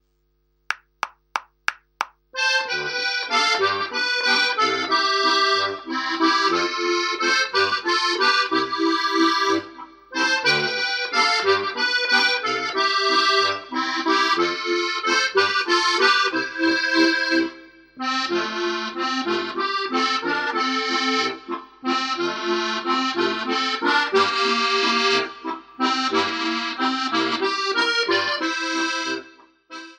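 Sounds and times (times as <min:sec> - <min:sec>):
waltz second part: 0:02.4 - 0:29.9.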